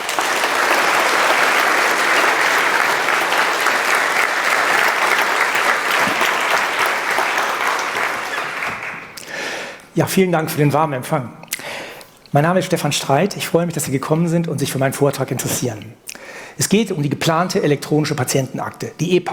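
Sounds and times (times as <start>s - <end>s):
audience applause: 0.0s - 9.3s
speech: 10.0s - 11.4s, 12.3s - 19.3s.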